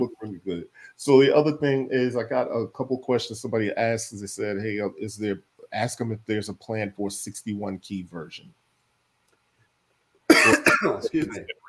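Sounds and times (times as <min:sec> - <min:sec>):
speech: 0:00.0 - 0:08.6, 0:10.4 - 0:11.6
man coughing and choking: 0:10.3 - 0:11.6
throat clearing: 0:10.3 - 0:11.6.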